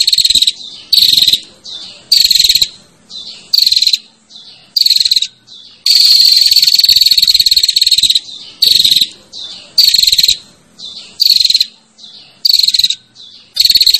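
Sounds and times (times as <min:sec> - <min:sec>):
female prinia calling with rasping buzzy bursts: 0:00.0 - 0:13.9.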